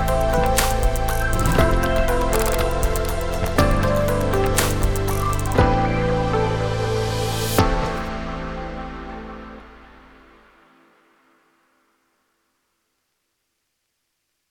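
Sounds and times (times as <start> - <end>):
retro chill music: 0.0 - 11.4.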